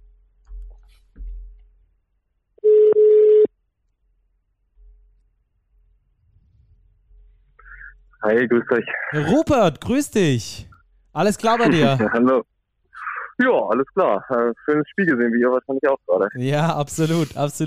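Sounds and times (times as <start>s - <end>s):
soft low thumps: 0.0s - 2.0s
telephone ringing tone while calling: 2.6s - 3.5s
speech: 8.2s - 12.5s, 13.4s - 17.6s
laughter: 11.6s - 12.2s.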